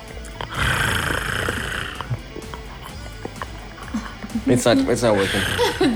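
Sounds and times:
person imitating a cat purring: 0:00.5 - 0:02.3
laughter: 0:03.8 - 0:05.9
speech: 0:04.5 - 0:05.9.

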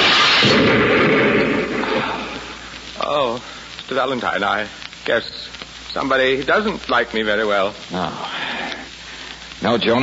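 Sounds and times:
hand grenade exploding in a radio drama: 0:00.0 - 0:02.6
speech: 0:00.4 - 0:00.8, 0:03.4 - 0:08.4, 0:09.6 - 0:10.0.

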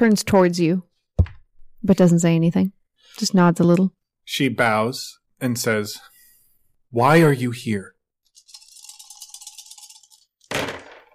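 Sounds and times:
speech: 0:00.0 - 0:00.9, 0:01.8 - 0:06.1, 0:06.9 - 0:08.0
heavy dice rattling and clattering: 0:08.4 - 0:11.1
heavy dice landing with a loud sharp clack: 0:10.4 - 0:11.1.

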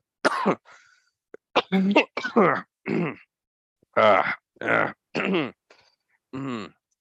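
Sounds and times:
coughing: 0:00.2 - 0:00.7, 0:01.5 - 0:03.4, 0:04.0 - 0:05.6, 0:06.4 - 0:06.8.

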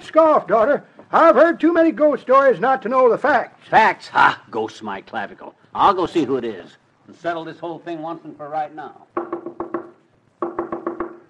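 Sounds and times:
speech: 0:00.1 - 0:09.2
knocking on a door: 0:09.2 - 0:11.2.

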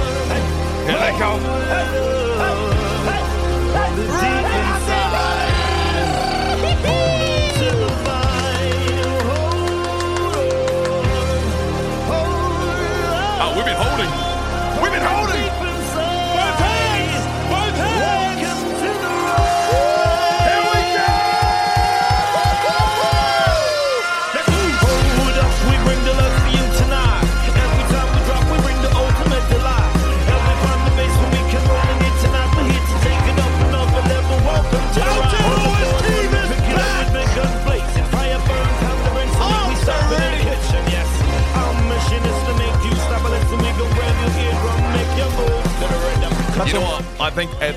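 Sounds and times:
stadium crowd cheering: 0:00.0 - 0:47.0
speech: 0:01.2 - 0:06.2, 0:46.6 - 0:47.7
people shouting: 0:04.0 - 0:08.4, 0:16.3 - 0:25.3, 0:34.7 - 0:37.5
rhythmic thumping pulses: 0:05.4 - 0:11.4, 0:16.5 - 0:47.7.

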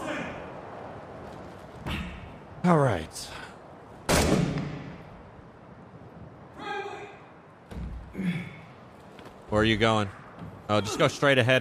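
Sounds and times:
speech: 0:02.6 - 0:03.4, 0:09.5 - 0:11.5
gunfire in the video game Six Days in Fallujah: 0:04.1 - 0:04.9.

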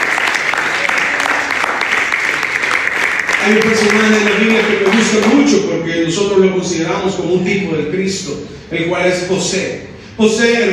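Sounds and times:
audience applause: 0:00.0 - 0:05.3
speech: 0:03.4 - 0:10.7.

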